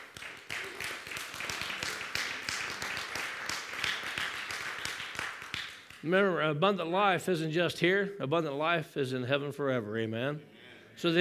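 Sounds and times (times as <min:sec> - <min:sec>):
audience clapping hands: 0:00.0 - 0:06.2
speech: 0:06.0 - 0:11.1.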